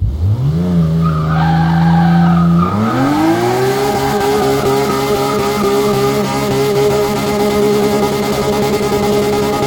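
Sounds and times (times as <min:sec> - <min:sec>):
car engine revving: 0:00.0 - 0:09.6.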